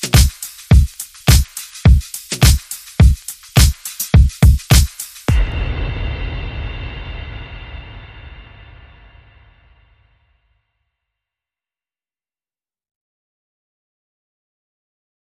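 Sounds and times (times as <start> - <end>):
music beat: 0.0 - 7.6.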